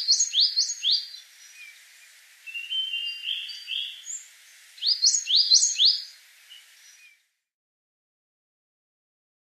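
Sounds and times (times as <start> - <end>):
coal tit calls and upward-sweeping whistles: 0.0 - 7.2.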